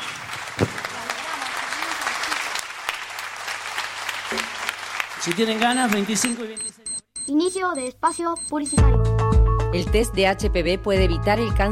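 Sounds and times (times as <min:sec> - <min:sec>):
audience clapping: 0:00.0 - 0:06.8
speech: 0:05.2 - 0:09.1, 0:09.7 - 0:11.7.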